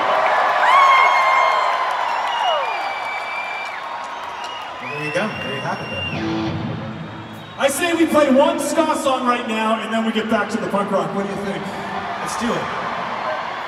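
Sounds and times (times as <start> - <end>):
large crowd at a punk rock band's concert cheering: 0.0 - 13.6
high whoops and whistles: 2.2 - 7.7
speech: 8.0 - 11.8, 12.4 - 12.8.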